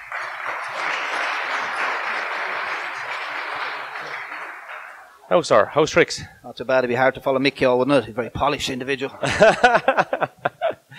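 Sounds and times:
audience applause: 0:00.0 - 0:05.3
speech: 0:05.3 - 0:10.4
laughter: 0:09.1 - 0:10.8.

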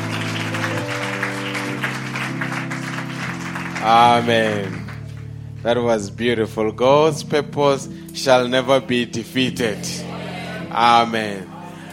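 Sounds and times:
crowd clapping: 0:00.0 - 0:05.6
organ or keyboard chords: 0:00.0 - 0:11.9
speech: 0:03.8 - 0:04.8, 0:05.6 - 0:10.0, 0:10.7 - 0:11.5.

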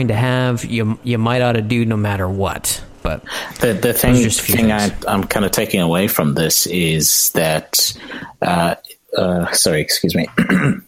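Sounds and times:
speech: 0:00.0 - 0:10.8
throat clearing: 0:10.3 - 0:10.8.

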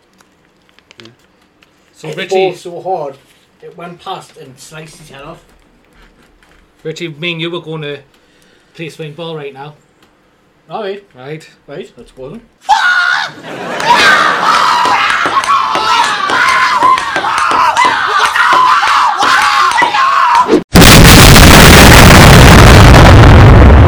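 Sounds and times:
speech: 0:01.0 - 0:01.4, 0:02.0 - 0:05.6, 0:06.8 - 0:08.2, 0:08.8 - 0:09.8, 0:10.7 - 0:12.7, 0:13.3 - 0:14.6
people shouting and screaming: 0:12.6 - 0:23.8
grenade explosion: 0:20.7 - 0:23.8.

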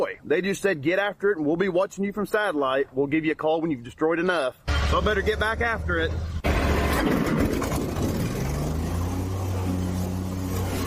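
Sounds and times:
speech: 0:00.0 - 0:06.4, 0:07.0 - 0:07.5
John Deere skid steer small tractor engine mowing: 0:06.5 - 0:10.8.

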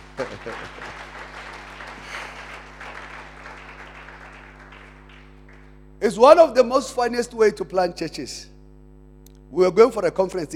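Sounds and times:
laughter: 0:00.0 - 0:03.0
audience clapping as an offering: 0:00.0 - 0:06.0
speech: 0:00.2 - 0:01.1, 0:06.0 - 0:08.5, 0:09.5 - 0:10.5.

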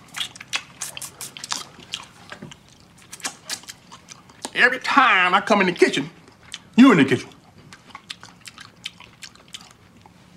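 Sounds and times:
wet smacking chewing of food: 0:00.0 - 0:04.6, 0:06.2 - 0:10.3
speech: 0:04.6 - 0:06.2, 0:06.8 - 0:07.3.

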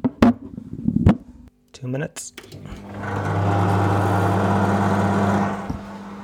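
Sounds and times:
speech: 0:01.8 - 0:03.5
microwave oven running: 0:02.4 - 0:06.2.

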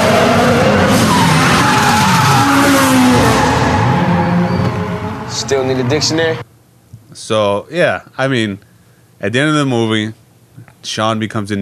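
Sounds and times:
drifting car engine roaring: 0:00.0 - 0:06.4
drifting car tires skidding: 0:00.0 - 0:06.4
speech: 0:05.7 - 0:06.5, 0:07.1 - 0:11.6.

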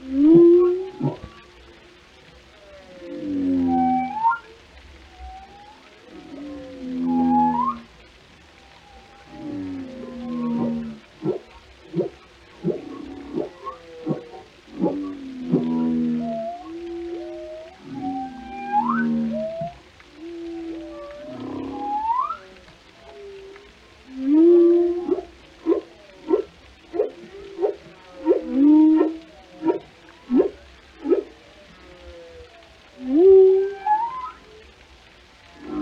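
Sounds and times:
whale calls: 0:00.0 - 0:35.7.

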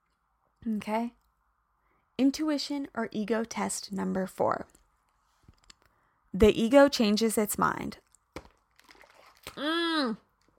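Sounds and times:
speech: 0:00.6 - 0:01.2, 0:02.2 - 0:04.8, 0:06.3 - 0:08.0, 0:09.5 - 0:10.2
person gulping a giant swig of water: 0:08.7 - 0:10.5.

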